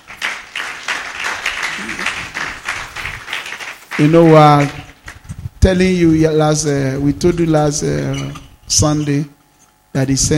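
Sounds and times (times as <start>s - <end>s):
audience clapping: 0.0s - 5.3s
speech: 4.0s - 4.8s, 5.6s - 9.4s, 10.0s - 10.3s.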